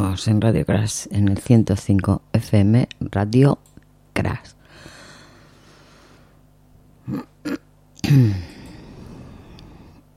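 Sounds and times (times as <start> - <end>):
speech: 0.2 - 5.0, 7.1 - 8.5
person coughing with a low rough groaning tone: 7.0 - 8.7.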